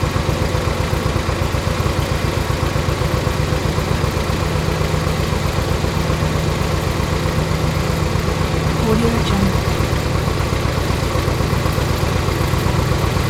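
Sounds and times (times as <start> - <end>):
tractor engine: 0.1 - 13.2.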